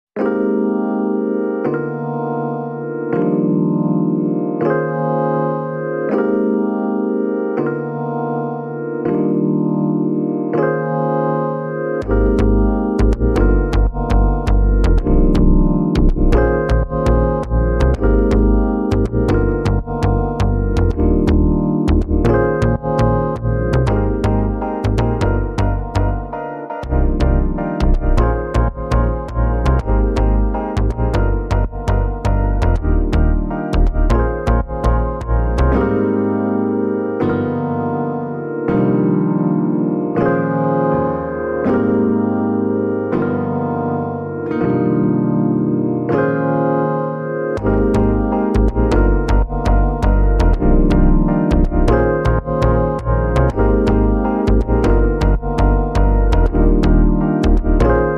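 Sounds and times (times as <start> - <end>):
reduced music arrangement without drums: 0.2 - 58.1.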